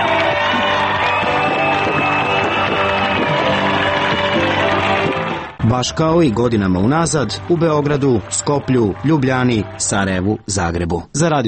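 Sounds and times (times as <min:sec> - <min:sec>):
whoops and shouts from the crowd: 0:00.0 - 0:04.8
concert audience cheering: 0:00.0 - 0:10.4
speech: 0:05.7 - 0:11.4.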